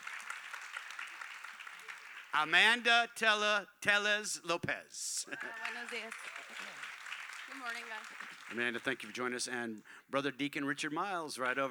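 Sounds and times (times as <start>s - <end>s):
church audience applause welcoming a guest on stage: 0.0s - 2.4s, 5.3s - 9.2s
speech: 2.3s - 6.9s, 7.5s - 11.6s.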